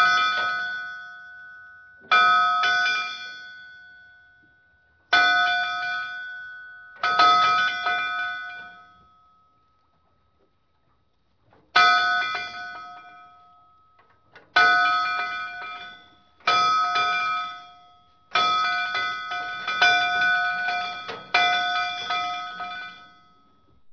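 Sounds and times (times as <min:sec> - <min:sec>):
buoy bell on the ocean: 0:00.0 - 0:10.1, 0:11.7 - 0:23.9.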